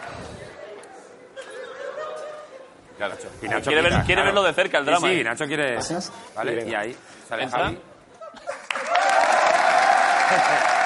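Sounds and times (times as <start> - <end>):
laughter: 0.9 - 3.4, 8.2 - 8.9, 10.2 - 10.8
speech: 3.0 - 7.9, 10.3 - 10.7
audience applause: 8.6 - 10.8.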